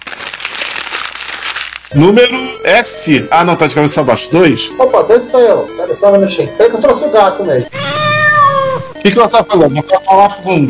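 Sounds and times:
paper sheet crinkling as it is picked up: 0:00.0 - 0:02.0
speech: 0:01.9 - 0:07.8, 0:09.0 - 0:10.6.

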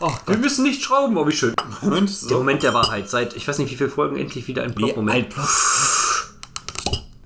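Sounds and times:
speech: 0:00.0 - 0:05.8
cork easing out of a bottle with hiss of escaping gas: 0:05.4 - 0:06.4.

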